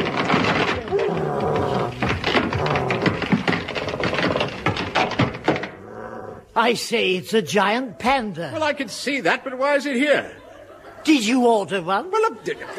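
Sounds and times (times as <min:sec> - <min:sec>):
wooden crate being smashed to pieces: 0:00.0 - 0:05.8
speech: 0:06.6 - 0:10.4, 0:11.0 - 0:12.7
laughter: 0:10.0 - 0:12.7.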